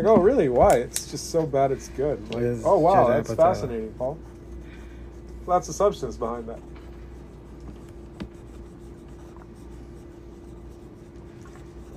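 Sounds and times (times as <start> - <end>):
speech: 0.0 - 4.3, 5.5 - 6.7
pencil drawing comic pages on paper: 2.6 - 11.9.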